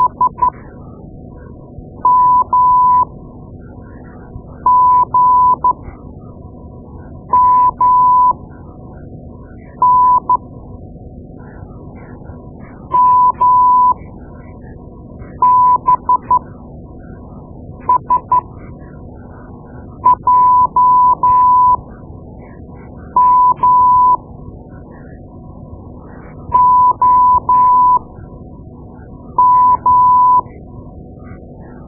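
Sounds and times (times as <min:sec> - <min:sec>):
morse code: 0:00.0 - 0:00.5, 0:02.0 - 0:03.0, 0:04.7 - 0:05.8, 0:07.3 - 0:08.3, 0:09.8 - 0:10.4, 0:12.9 - 0:14.0, 0:15.4 - 0:16.4, 0:17.9 - 0:18.4, 0:20.1 - 0:21.8, 0:23.2 - 0:24.2, 0:26.5 - 0:28.1, 0:29.4 - 0:30.5.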